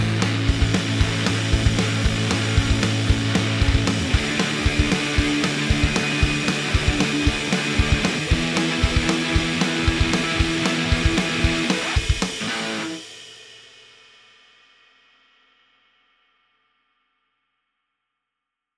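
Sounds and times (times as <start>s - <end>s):
disco music: 0.0s - 11.9s.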